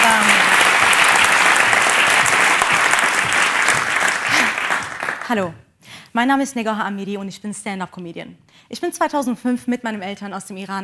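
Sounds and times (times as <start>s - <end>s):
audience applause: 0.0s - 5.3s
speech: 5.3s - 10.8s.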